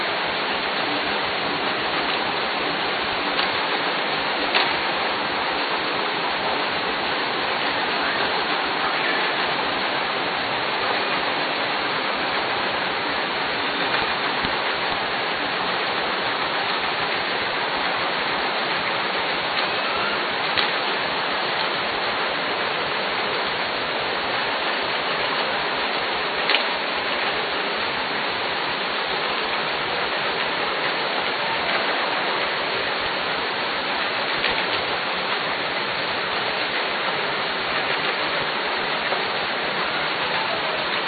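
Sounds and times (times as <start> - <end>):
ship noise: 0.0 - 41.0.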